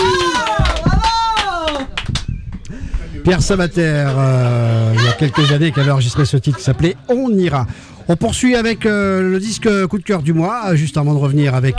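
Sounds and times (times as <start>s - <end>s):
applause: 0.0s - 2.3s
speech: 3.2s - 11.7s
laughter: 3.9s - 7.8s.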